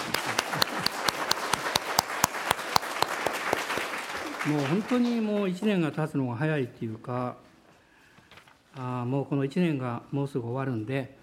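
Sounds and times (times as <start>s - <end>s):
audience applause: 0.0s - 5.3s
speech: 4.4s - 7.5s, 8.8s - 11.2s.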